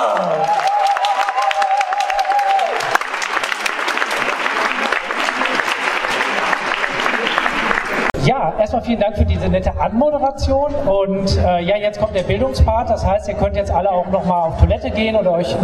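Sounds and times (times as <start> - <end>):
audience applause: 0.0 - 8.2
speech: 8.5 - 15.6.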